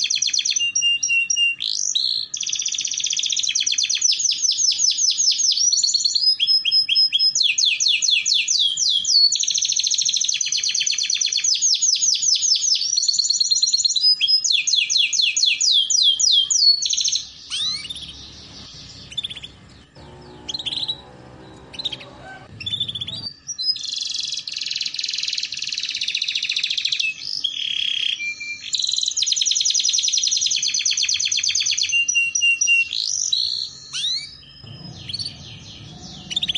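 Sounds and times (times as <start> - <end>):
canary singing: 0.0 - 36.5
low hum: 17.2 - 23.6.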